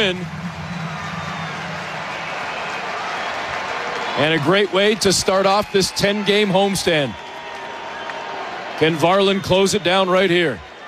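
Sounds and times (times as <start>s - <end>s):
speech: 0.0s - 0.4s, 4.2s - 7.2s, 8.8s - 10.7s
baseball crowd standing and cheering: 0.0s - 10.8s.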